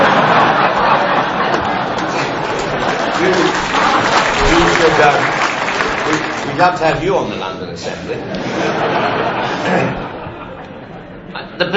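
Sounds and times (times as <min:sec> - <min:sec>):
audience clapping: 0:00.0 - 0:07.4
laughter: 0:00.0 - 0:11.7
murmur of voices: 0:00.0 - 0:11.7
speech: 0:06.6 - 0:10.1, 0:11.6 - 0:11.7.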